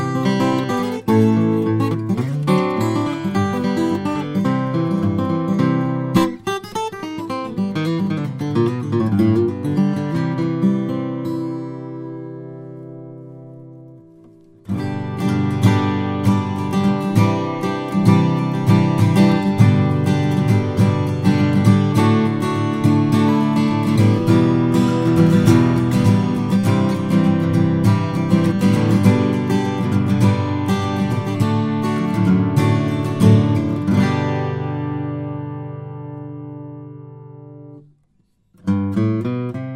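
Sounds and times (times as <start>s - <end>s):
L-00 custom steel string flattop guitar: 0.0s - 39.7s.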